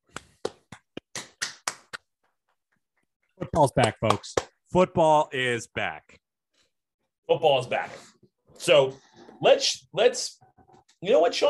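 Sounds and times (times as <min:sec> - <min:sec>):
hands clapping: 0:00.0 - 0:04.6
speech: 0:03.6 - 0:06.2, 0:07.3 - 0:10.4, 0:11.0 - 0:11.4.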